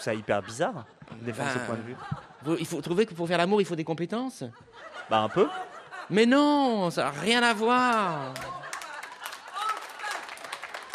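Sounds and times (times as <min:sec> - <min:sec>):
laughter: 0:00.0 - 0:03.5, 0:04.3 - 0:10.9
speech: 0:00.0 - 0:08.6
scattered audience clapping during a studio discussion: 0:07.2 - 0:10.9.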